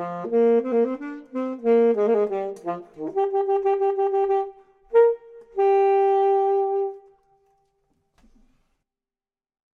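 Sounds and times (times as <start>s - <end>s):
clarinet: 0.0s - 7.8s
saxophone: 0.0s - 7.8s.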